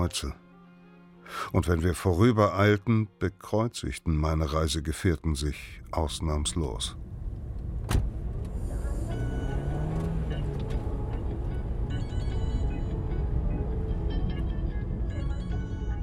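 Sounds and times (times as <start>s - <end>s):
speech: 0.0s - 0.4s, 1.3s - 7.0s
Dacia Logan taxi car driving: 6.7s - 16.0s.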